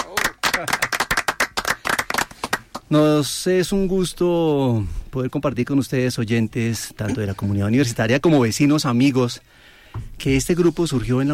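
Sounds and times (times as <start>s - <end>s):
audience applauding with loud sharp claps: 0.0s - 2.9s
speech: 0.6s - 0.9s, 2.9s - 11.3s.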